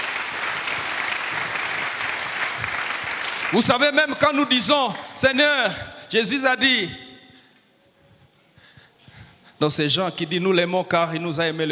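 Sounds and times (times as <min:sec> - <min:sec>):
church congregation applauding: 0:00.0 - 0:05.2
speech: 0:03.5 - 0:07.0, 0:09.6 - 0:11.7.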